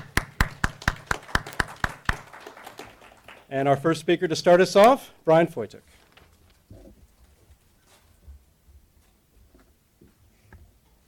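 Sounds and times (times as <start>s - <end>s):
audience clapping to welcome two speakers at an evening event: 0.0s - 3.5s
speech: 3.5s - 6.0s.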